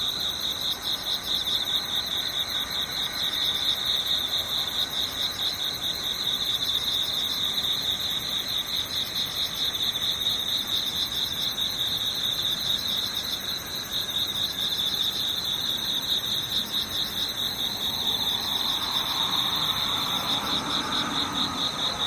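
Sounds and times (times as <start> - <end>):
insects chirring: 0.0 - 22.0
faint rising whoosh: 17.6 - 22.0.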